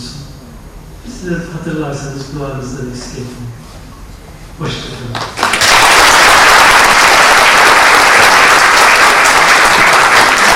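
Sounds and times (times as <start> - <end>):
speech: 1.0 - 3.6, 4.6 - 5.4
audience applause: 5.4 - 10.5.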